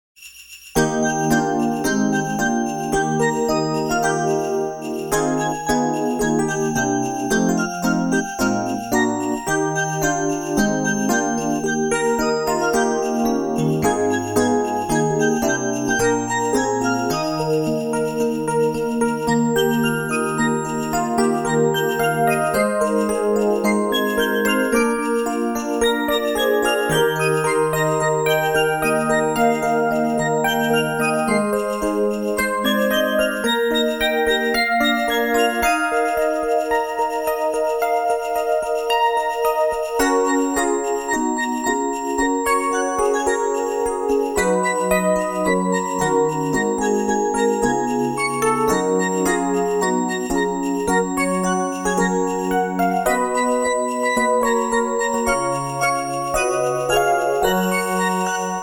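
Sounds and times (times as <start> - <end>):
Christmas song: 0.2 - 58.6.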